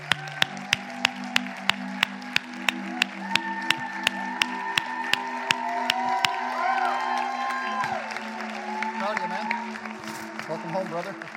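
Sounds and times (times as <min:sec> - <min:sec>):
church crowd cheering and clapping: 0:00.0 - 0:11.3.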